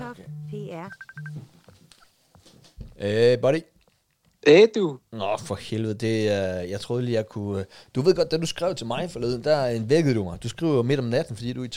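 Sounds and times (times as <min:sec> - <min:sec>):
incoming Messenger call synthetic ringtone: 0:00.0 - 0:01.4
speech: 0:00.2 - 0:01.6, 0:03.0 - 0:03.7, 0:04.4 - 0:11.7.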